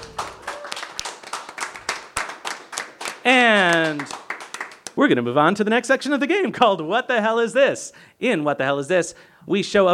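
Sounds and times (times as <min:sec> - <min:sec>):
audience applause: 0:00.0 - 0:04.9
speech: 0:03.2 - 0:04.2, 0:05.0 - 0:09.9.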